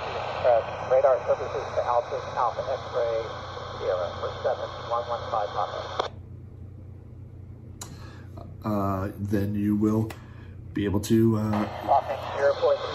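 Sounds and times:
airport radio traffic voices picked up on a scanner: 0.0s - 6.1s, 11.5s - 12.9s
speech: 0.4s - 6.2s, 8.6s - 10.2s, 10.8s - 12.9s.

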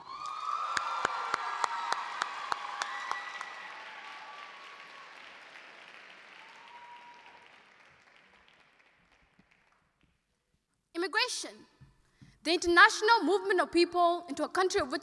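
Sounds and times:
audience applause and cheering for a poet at a poetry competition: 0.0s - 9.8s
speech: 11.2s - 11.7s, 12.4s - 15.0s.

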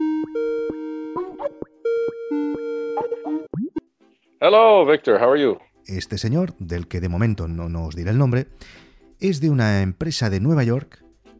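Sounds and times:
electronic ringtone signalling an incoming telephone call: 0.0s - 3.6s
speech: 4.4s - 11.0s.

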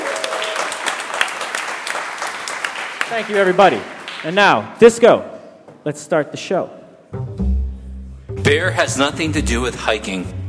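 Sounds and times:
audience applause: 0.0s - 4.4s
speech: 3.1s - 7.2s, 8.5s - 10.4s.

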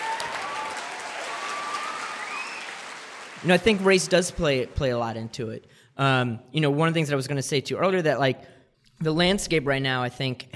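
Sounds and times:
audience applause: 0.0s - 5.3s
speech: 3.4s - 10.5s.

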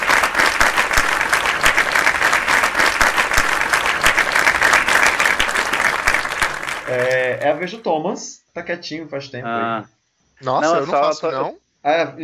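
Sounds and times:
slow applause clapping sound effect: 0.0s - 7.8s
speech: 6.9s - 12.2s.

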